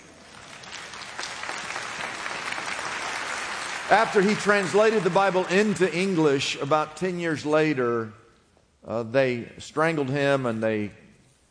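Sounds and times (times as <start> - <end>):
audience applause: 0.2 - 6.4
speech: 3.9 - 8.2, 8.8 - 11.0.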